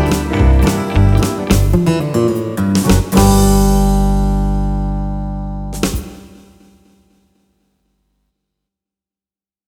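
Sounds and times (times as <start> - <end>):
cowboy banjo music: 0.0 - 6.0.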